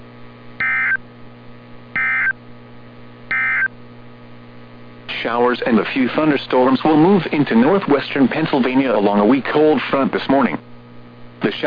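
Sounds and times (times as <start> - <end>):
emergency alert system tone signal: 0.6 - 1.0, 2.0 - 2.4, 3.3 - 3.7
speech: 5.2 - 10.7.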